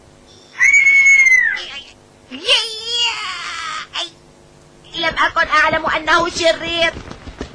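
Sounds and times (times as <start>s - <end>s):
caged bird screeching: 0.4s - 1.8s
speech: 5.4s - 7.0s.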